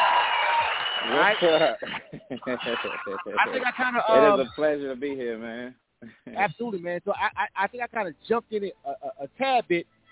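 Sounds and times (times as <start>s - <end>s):
round of applause: 0.0s - 1.9s
speech: 1.1s - 10.0s
laughter: 1.2s - 4.7s.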